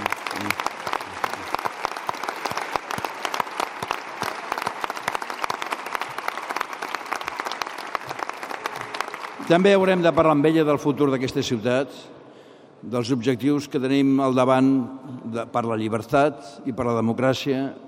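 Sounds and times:
audience applause: 0:00.0 - 0:10.5
speech: 0:09.5 - 0:12.2, 0:12.8 - 0:17.8.

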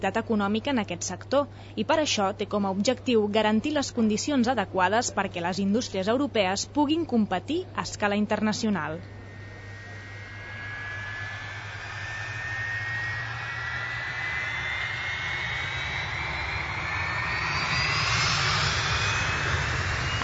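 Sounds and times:
speech: 0:00.0 - 0:09.2
airplane flying: 0:08.5 - 0:20.2.

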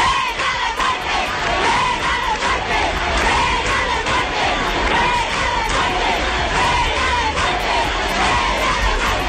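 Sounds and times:
angry crowd shouting outside police station: 0:00.0 - 0:09.2.

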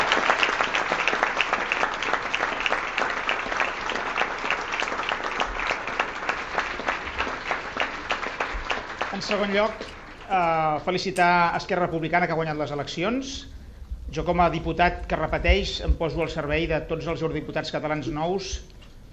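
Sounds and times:
audience applause: 0:00.0 - 0:10.4
speech: 0:09.3 - 0:13.5, 0:14.1 - 0:18.7.

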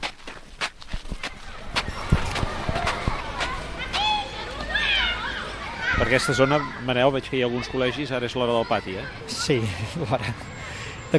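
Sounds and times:
footsteps of people walking outdoors on the northern edge of a town in the Vallès: 0:00.0 - 0:06.7
speech: 0:06.0 - 0:10.5
laughter: 0:09.4 - 0:10.8.

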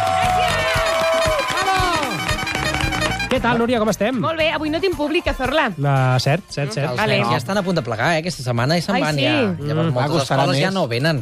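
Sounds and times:
audience applause: 0:00.0 - 0:03.4
people cheering: 0:00.0 - 0:03.6
speech: 0:03.4 - 0:11.2.

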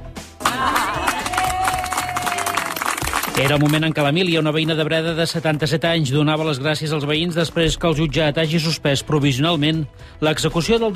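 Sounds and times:
voices and whistle-like cheers: 0:00.4 - 0:03.6
crowd of neighbours applauding: 0:00.4 - 0:04.2
speech: 0:03.4 - 0:10.9.

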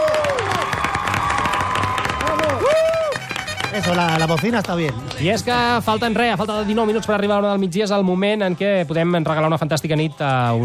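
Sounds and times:
studio audience applause: 0:00.0 - 0:05.3
speech: 0:03.8 - 0:10.6.

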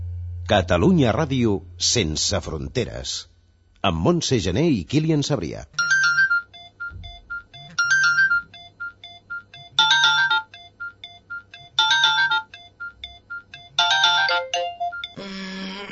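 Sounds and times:
speech: 0:00.5 - 0:05.8
alarm clock ringing: 0:07.5 - 0:15.2.

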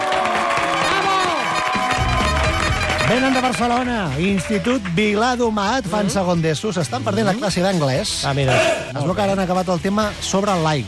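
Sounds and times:
audience applause: 0:00.0 - 0:05.0
speech: 0:03.1 - 0:10.8.

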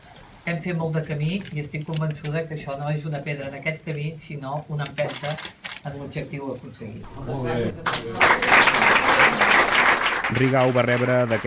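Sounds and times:
speech: 0:00.5 - 0:09.4, 0:10.3 - 0:11.4
applause in parliament chamber: 0:07.0 - 0:11.4.

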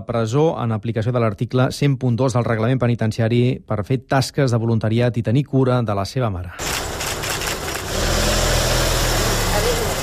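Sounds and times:
speech: 0:00.0 - 0:06.7
car engine as vehicle leaves prison: 0:06.6 - 0:10.0.

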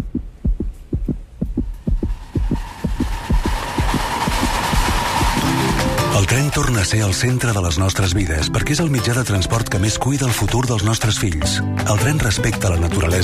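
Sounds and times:
fetal heartbeat on ultrasound monitor: 0:00.0 - 0:04.9
low hum: 0:00.0 - 0:07.7
speech: 0:06.6 - 0:13.2.

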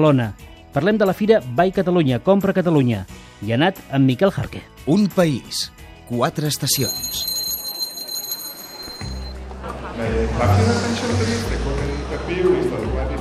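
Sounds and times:
speech: 0:00.0 - 0:07.3
small bell ringing: 0:06.5 - 0:09.4
laughter: 0:09.3 - 0:13.1.

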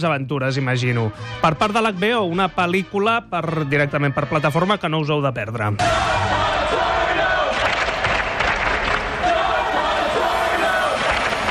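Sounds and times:
speech: 0:00.0 - 0:07.0
large crowd shouting and chanting: 0:05.8 - 0:11.4.

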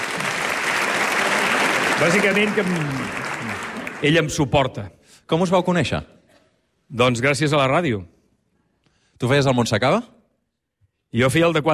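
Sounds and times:
audience applause: 0:00.0 - 0:04.5
speech: 0:02.0 - 0:06.2, 0:06.9 - 0:08.1, 0:09.2 - 0:10.2, 0:11.1 - 0:11.7.

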